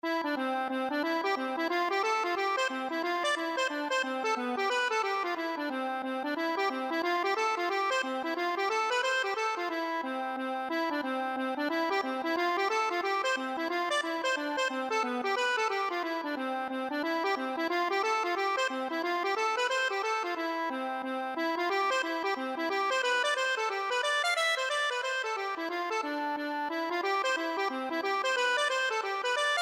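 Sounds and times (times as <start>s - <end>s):
accordion playing a hornpipe: 0.0s - 29.6s.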